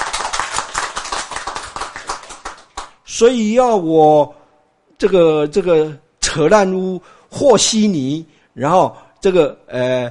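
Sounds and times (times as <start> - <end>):
crowd clapping: 0.0 - 3.0
speech: 3.1 - 4.4, 5.0 - 10.0.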